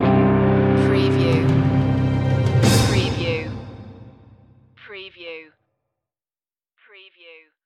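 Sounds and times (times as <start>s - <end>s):
music stinger: 0.0s - 4.5s.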